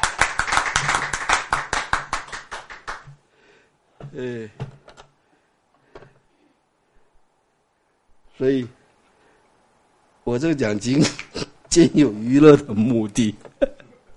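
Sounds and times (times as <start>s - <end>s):
hand clapping: 0.0s - 3.2s
speech: 4.1s - 4.7s, 8.4s - 8.8s, 10.3s - 13.7s.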